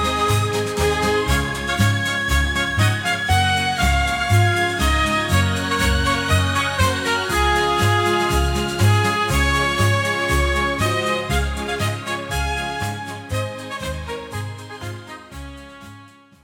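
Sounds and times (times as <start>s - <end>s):
rhythmic polka march or foxtrot music with light waltz passages: 0.0s - 16.1s.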